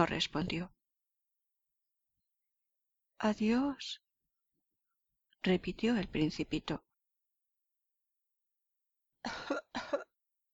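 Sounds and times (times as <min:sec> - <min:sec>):
speech: 0:00.0 - 0:00.8, 0:03.2 - 0:04.0, 0:05.4 - 0:06.9, 0:09.2 - 0:10.1
performer coughing for a flower character: 0:09.3 - 0:10.2.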